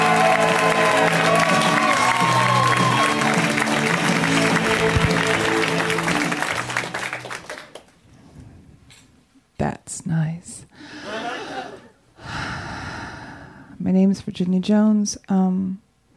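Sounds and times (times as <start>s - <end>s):
musical tune: 0.0s - 7.4s
audience applause and cheering welcoming a comedian onto a stage: 0.0s - 8.0s
laughter: 11.0s - 12.0s
speech: 14.1s - 15.8s.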